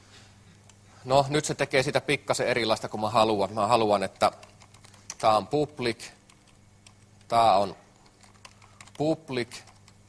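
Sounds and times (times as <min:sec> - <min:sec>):
speech: 0:01.0 - 0:04.4, 0:05.2 - 0:06.2, 0:07.3 - 0:07.8, 0:09.0 - 0:09.7
typing code on a computer keyboard: 0:04.0 - 0:05.3, 0:06.2 - 0:07.4, 0:08.0 - 0:10.0.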